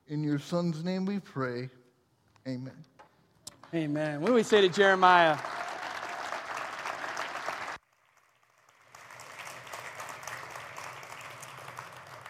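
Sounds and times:
speech: 0.1s - 1.8s, 2.4s - 2.9s, 3.7s - 5.6s
audience applause: 3.6s - 12.2s.

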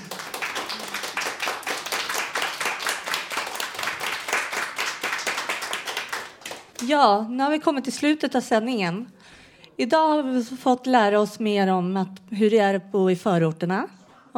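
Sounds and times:
crowd clapping: 0.0s - 7.0s
speech: 6.8s - 9.2s, 9.8s - 14.3s.

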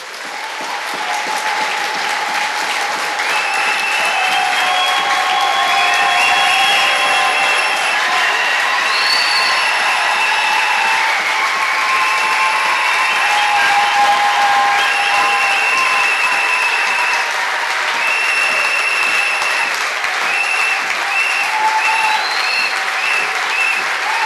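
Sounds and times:
congregation clapping for the Lord at a church gathering: 0.0s - 24.2s.

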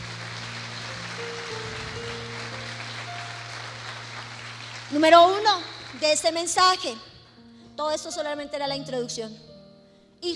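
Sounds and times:
loud applause: 0.0s - 6.7s
speech: 4.9s - 7.1s, 7.8s - 9.5s.

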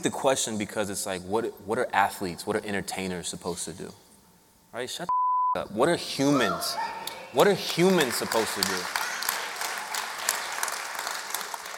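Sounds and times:
speech: 0.0s - 4.1s, 4.7s - 9.0s
audience clapping: 7.0s - 11.7s.

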